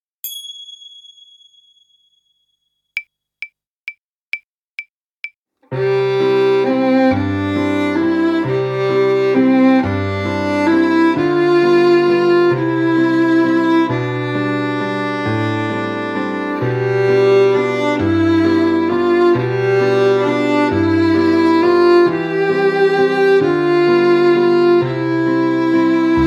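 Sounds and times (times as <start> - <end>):
violin: 5.7 - 26.2.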